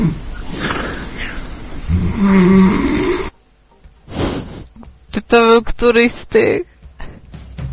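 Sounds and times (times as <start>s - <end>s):
person snoring: 0.0s - 3.4s
speech: 2.0s - 3.0s, 5.3s - 6.7s.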